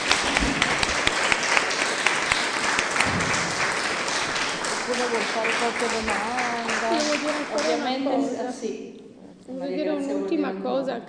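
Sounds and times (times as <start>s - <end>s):
audience applause: 0.0s - 7.9s
speech: 5.1s - 11.0s.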